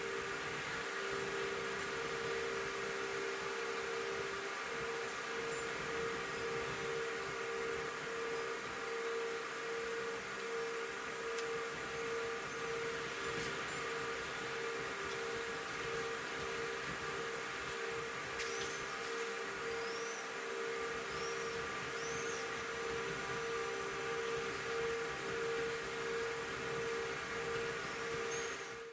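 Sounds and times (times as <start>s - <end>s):
air conditioning system: 0.0s - 28.9s
early morning outdoor cityscape ambience: 0.0s - 28.9s.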